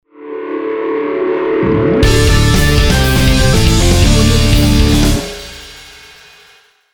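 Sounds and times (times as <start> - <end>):
hard rock logo jingle: 1.5 - 6.6.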